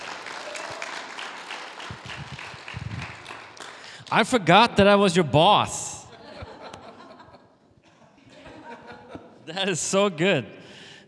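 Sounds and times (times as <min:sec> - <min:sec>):
audience applause welcoming a pastor to the stage: 0:00.0 - 0:04.1
speech: 0:04.1 - 0:05.9, 0:09.6 - 0:11.0
laughter: 0:06.1 - 0:09.5.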